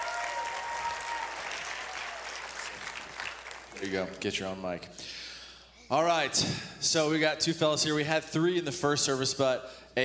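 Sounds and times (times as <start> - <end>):
audience applause: 0.0 - 4.2
speech: 3.8 - 5.2, 5.9 - 10.0.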